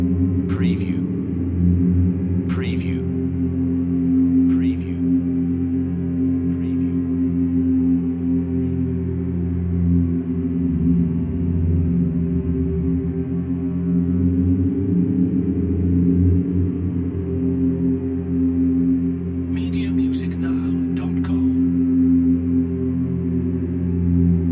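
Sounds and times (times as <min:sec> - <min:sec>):
eerie synth drone: 0:00.0 - 0:24.5.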